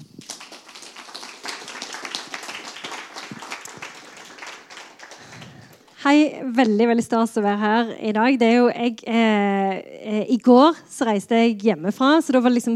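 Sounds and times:
audience applause: 0.2 - 6.0
speech: 6.0 - 12.7.

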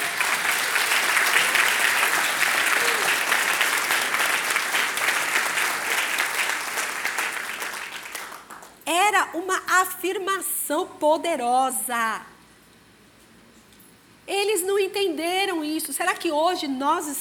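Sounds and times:
audience applauding: 0.0 - 8.8
speech: 9.4 - 12.3, 14.3 - 17.1.

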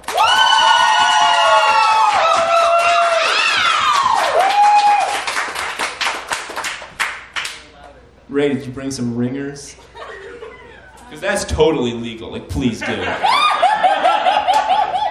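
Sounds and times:
audience applause: 0.0 - 7.6, 13.3 - 15.0
speech: 8.4 - 9.9, 11.1 - 13.4
laughter: 9.8 - 11.3, 12.7 - 15.0.

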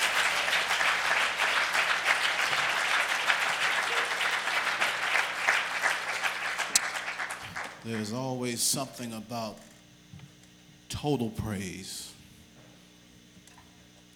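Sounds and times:
audience hand clapping: 0.0 - 8.2
speech: 7.8 - 9.7, 11.0 - 12.1.

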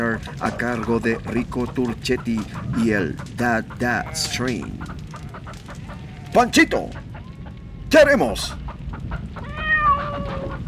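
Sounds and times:
speech: 0.0 - 5.0, 6.3 - 7.0, 7.9 - 8.6
cat meowing: 9.4 - 10.6.

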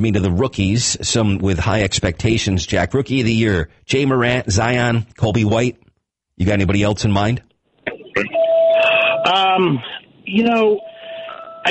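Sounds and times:
speech: 0.0 - 5.8, 6.4 - 7.5, 8.2 - 8.4, 9.2 - 10.9
phone ringing: 8.1 - 9.7, 10.3 - 11.7.

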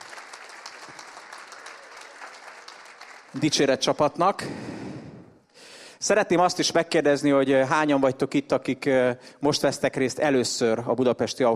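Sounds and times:
faint applause from a church congregation in Budapest: 0.0 - 3.6
speech: 3.3 - 4.7, 6.0 - 11.5.

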